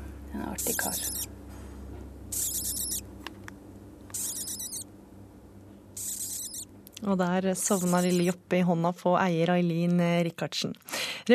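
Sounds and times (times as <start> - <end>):
low steady hum: 0.0 - 10.3
newly hatched chick whimpering contentedly: 0.6 - 1.3, 2.3 - 3.0, 4.1 - 4.8, 6.0 - 6.6, 7.6 - 8.3
speech: 0.6 - 1.4, 7.0 - 11.3.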